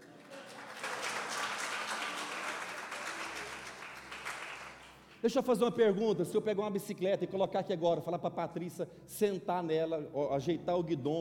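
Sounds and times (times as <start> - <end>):
audience applause: 0.0 - 5.2
speech: 5.2 - 11.2.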